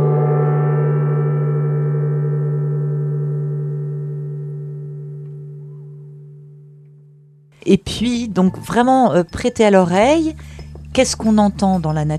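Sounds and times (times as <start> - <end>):
gong being struck: 0.0 - 7.5
speech: 7.7 - 12.1.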